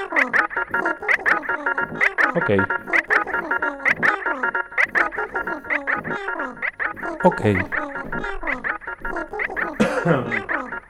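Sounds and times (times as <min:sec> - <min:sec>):
laughter: 0:00.0 - 0:10.8
speech: 0:02.4 - 0:02.8, 0:07.2 - 0:07.8, 0:10.0 - 0:10.5
radio host coughing during a live radio broadcast: 0:09.7 - 0:10.5.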